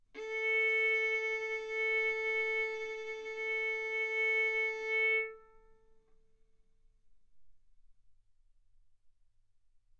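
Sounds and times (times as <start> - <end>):
violin arco on A string: 0.2 - 5.8.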